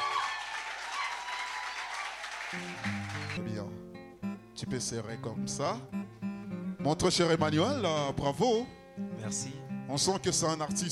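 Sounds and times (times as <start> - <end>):
applause: 0.0 - 3.4
speech: 2.5 - 3.8, 4.6 - 6.0, 6.8 - 10.9.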